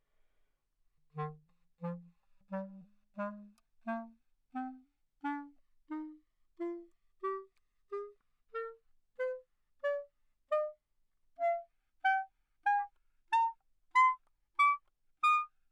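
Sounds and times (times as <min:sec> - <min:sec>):
classical B-flat clarinet: 0:01.1 - 0:10.8, 0:11.4 - 0:15.6.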